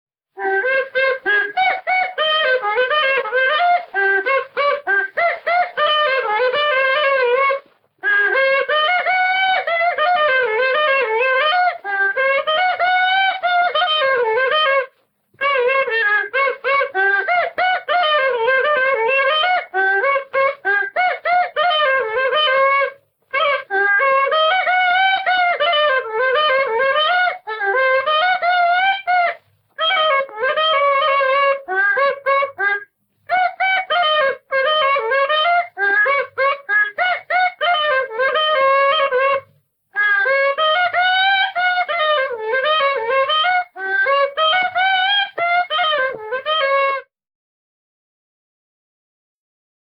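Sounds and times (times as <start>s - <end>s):
mazurka polka music from Suvalkija: 0.3s - 47.1s.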